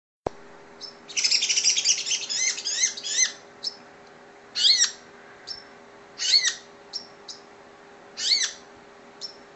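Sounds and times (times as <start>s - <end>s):
long-tailed shrike singing: 0.8s - 3.8s, 4.5s - 7.5s, 8.2s - 8.6s.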